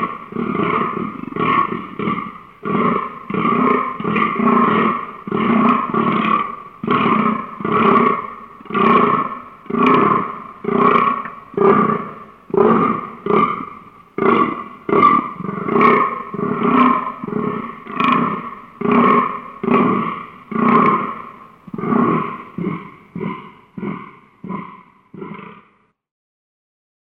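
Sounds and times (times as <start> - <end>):
fallow deer Dama dama calling: 0.0 - 25.8.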